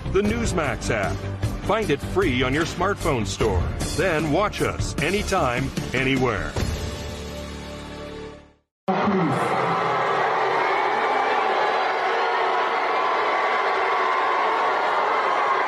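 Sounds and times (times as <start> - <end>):
speech: 0.2 - 6.7
crowd booing: 8.9 - 15.6.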